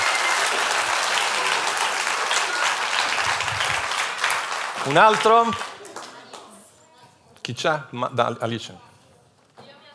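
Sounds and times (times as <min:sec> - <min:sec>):
crowd clapping: 0:00.0 - 0:06.6
speech: 0:04.8 - 0:05.7, 0:07.5 - 0:08.9.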